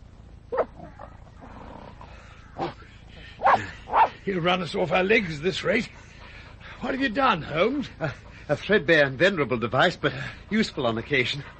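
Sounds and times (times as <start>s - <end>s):
low steady background: 0.0s - 11.5s
dog on a leather leash vocal bursts: 0.5s - 4.2s
speech: 3.6s - 6.1s, 6.8s - 11.5s.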